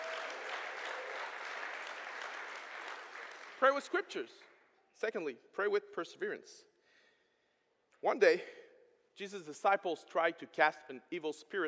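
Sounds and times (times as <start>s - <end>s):
church audience clapping: 0.0s - 4.6s
speech: 3.6s - 6.7s, 8.0s - 8.6s, 9.2s - 11.6s.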